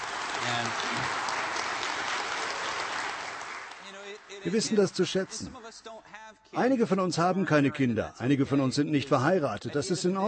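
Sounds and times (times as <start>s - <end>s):
audience applause: 0.0s - 5.2s
speech: 4.4s - 10.2s.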